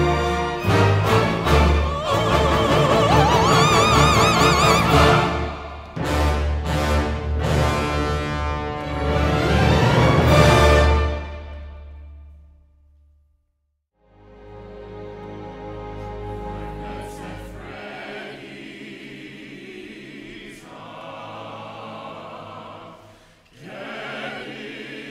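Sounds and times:
orchestral music: 0.0s - 12.4s, 14.0s - 20.1s.

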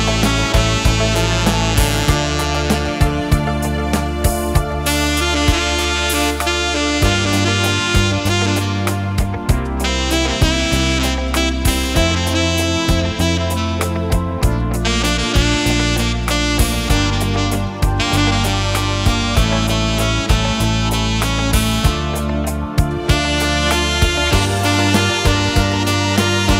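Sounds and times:
saxophone playing a cover: 0.0s - 26.5s.

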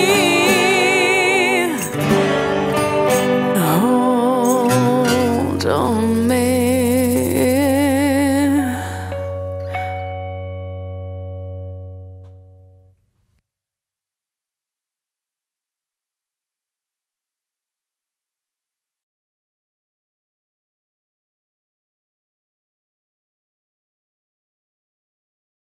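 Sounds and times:
acoustic cover song: 0.0s - 12.5s.

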